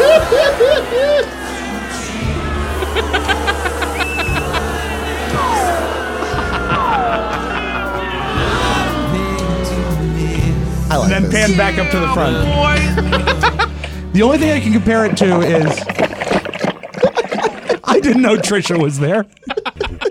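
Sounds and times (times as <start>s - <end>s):
laughter: 0.0s - 10.2s, 11.0s - 20.0s
concert crowd cheering: 0.0s - 13.0s
speech: 11.5s - 16.0s, 18.1s - 19.5s.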